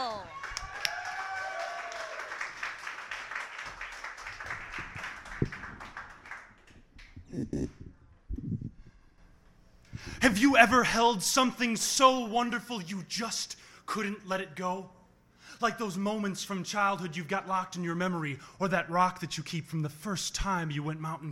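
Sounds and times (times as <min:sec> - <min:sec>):
audience applause: 0:00.0 - 0:06.7
speech: 0:07.3 - 0:07.8, 0:10.2 - 0:15.0, 0:15.6 - 0:21.3.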